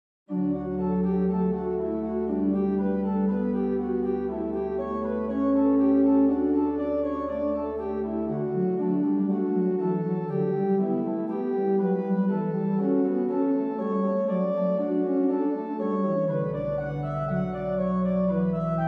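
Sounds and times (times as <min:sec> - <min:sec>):
organ piece in C major with wet reverb: 0:00.3 - 0:18.8.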